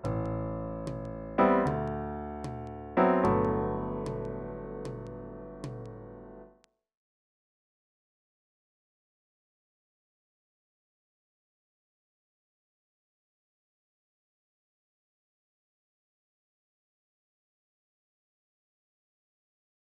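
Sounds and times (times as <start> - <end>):
left-hand chord voicing: 0.0 - 6.4.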